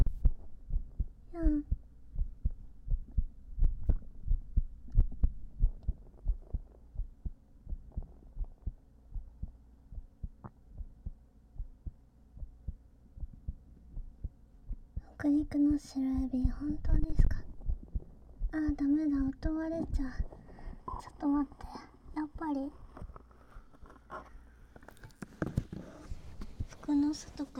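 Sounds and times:
heartbeat picked up by a microphone on the chest: 0.0s - 20.8s, 26.2s - 26.8s
faint hum: 0.0s - 27.5s
speech: 15.2s - 17.4s, 18.6s - 20.4s, 21.0s - 22.8s, 26.9s - 27.5s.

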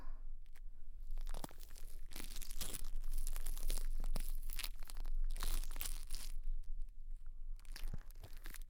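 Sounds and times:
crunchy ASMR ball rubbing on ears: 1.0s - 6.6s, 7.6s - 8.6s.

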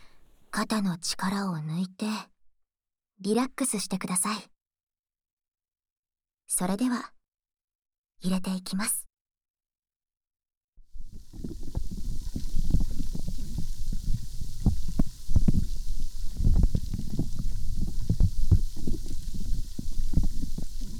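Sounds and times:
speech: 0.6s - 2.3s, 3.2s - 4.5s, 6.5s - 7.2s, 8.2s - 9.0s
bubbles popping and fizzing: 10.9s - 20.9s.

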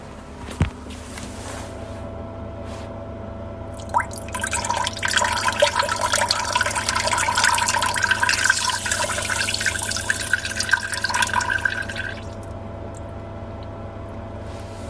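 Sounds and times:
urinating into a toilet: 3.7s - 14.8s.

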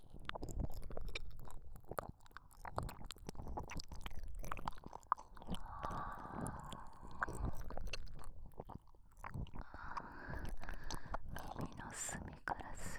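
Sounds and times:
ear licking: 0.1s - 11.8s
fellatio sounds: 4.8s - 12.8s.

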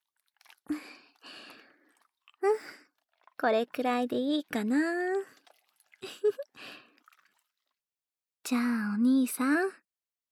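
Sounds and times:
lathered soap foam squelching: 0.1s - 7.6s
speech: 3.4s - 5.2s, 8.5s - 9.8s.

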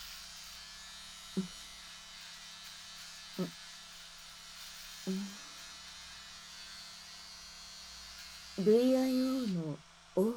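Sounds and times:
electric razor buzzing while shaving pubic hair: 0.0s - 10.3s
speech: 1.4s - 1.6s, 3.4s - 3.6s, 5.0s - 5.3s, 8.6s - 10.3s.

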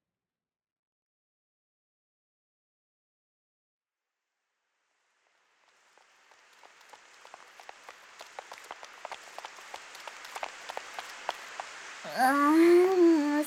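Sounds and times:
sudden rain shower: 5.4s - 13.4s.

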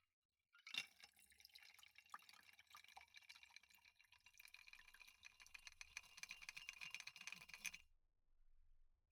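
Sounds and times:
ice and liquid tipped out of a chilled glass and a drink poured in: 0.6s - 7.6s.

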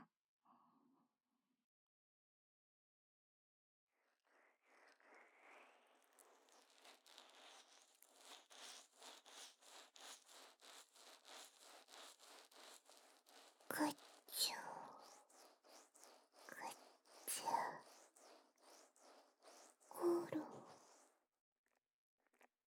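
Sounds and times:
ear oil massage ASMR: 5.2s - 21.1s.

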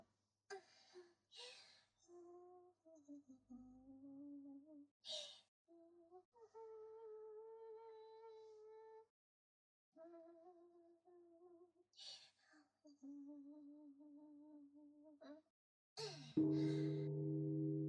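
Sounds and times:
New Year's Eve temple bell strike: 16.4s - 17.8s
soft steady tones: 16.4s - 17.8s.

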